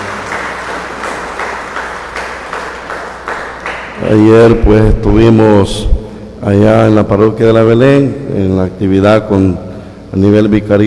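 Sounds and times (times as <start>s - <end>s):
audience applause: 0.0s - 4.0s
speech: 4.0s - 10.8s.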